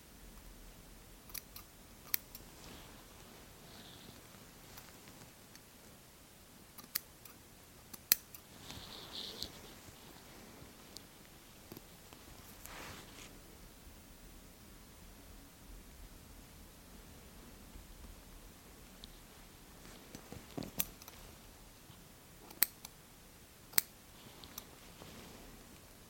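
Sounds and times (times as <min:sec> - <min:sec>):
soft steady hiss: 0:00.0 - 0:26.0
scissors snipping: 0:01.3 - 0:02.5, 0:06.8 - 0:08.5, 0:23.8 - 0:24.7
fabric rustling: 0:02.4 - 0:05.4, 0:08.4 - 0:13.5, 0:19.2 - 0:21.5, 0:24.1 - 0:26.0
brushing swishes: 0:08.5 - 0:13.4.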